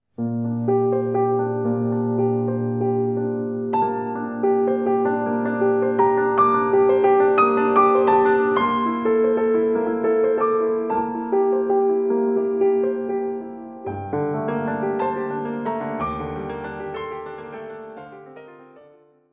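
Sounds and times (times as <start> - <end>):
piano prelude: 0.2 - 19.3.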